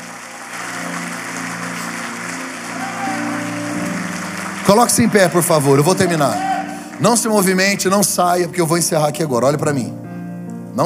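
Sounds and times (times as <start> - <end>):
audience applause: 0.0 - 8.5
speech: 4.7 - 10.0.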